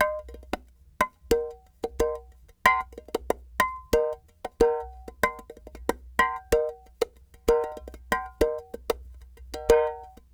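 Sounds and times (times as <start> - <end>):
clay pot world percussion: 0.0 - 10.3.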